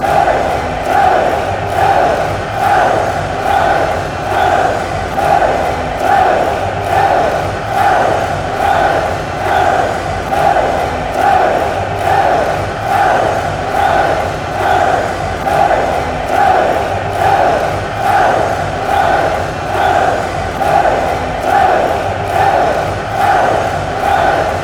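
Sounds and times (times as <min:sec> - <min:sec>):
fans chanting hey hey: 0:00.0 - 0:24.6.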